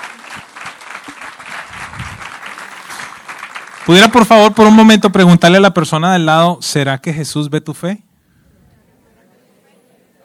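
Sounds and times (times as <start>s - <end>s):
audience applause: 0.0s - 4.8s
speech: 3.9s - 8.1s.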